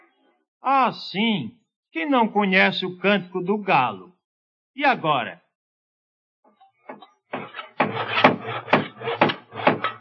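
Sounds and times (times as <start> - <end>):
speech: 0.8 - 4.1, 4.8 - 5.4
working on wood house-building: 6.9 - 9.9.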